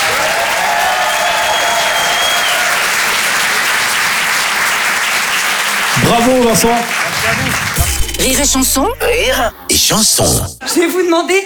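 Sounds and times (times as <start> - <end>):
audience applause at a comedy and song show: 0.0 - 9.0
speech: 6.2 - 11.4.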